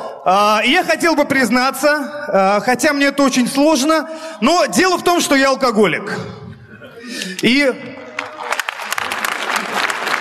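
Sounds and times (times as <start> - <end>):
speech: 0.2 - 6.4, 7.1 - 7.9
audience applause at a stand-up comedy show: 8.0 - 10.1.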